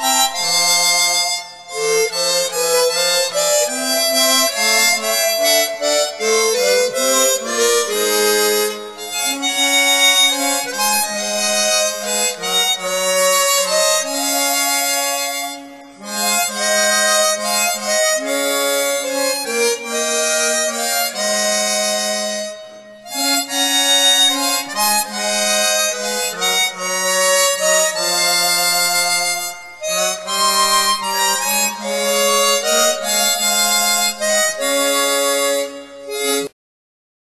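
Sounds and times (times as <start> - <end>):
chromatic harmonica playing hymns: 0.0 - 36.6.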